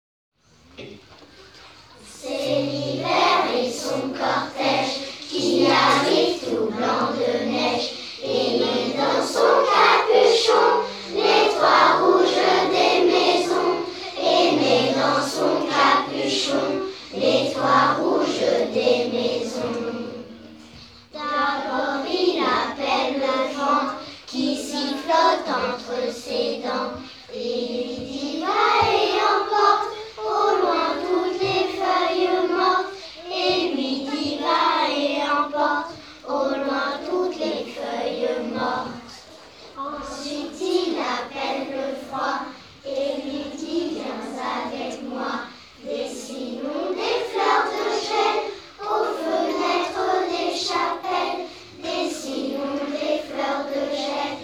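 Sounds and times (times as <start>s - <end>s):
vocals: 0.6s - 54.4s.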